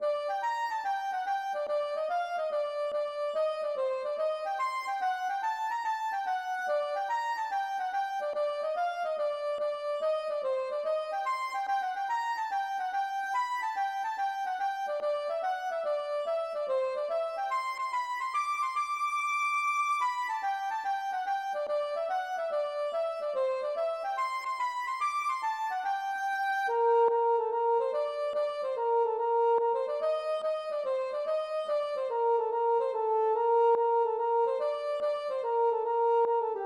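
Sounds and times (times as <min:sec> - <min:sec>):
gavotte: 0:00.0 - 0:36.6.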